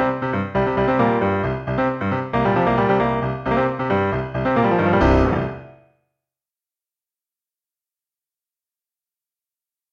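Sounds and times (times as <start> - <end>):
piano: 0.0 - 6.0.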